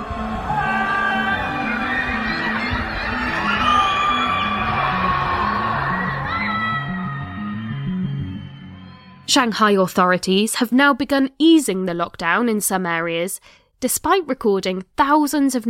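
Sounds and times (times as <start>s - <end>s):
people screaming and shouting from windows: 0.0s - 9.1s
speech: 9.3s - 15.6s.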